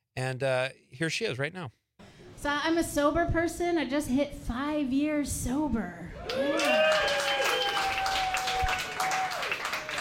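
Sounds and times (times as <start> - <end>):
speech: 0.2 - 1.8, 2.4 - 7.2
polite audience applause: 6.2 - 9.9.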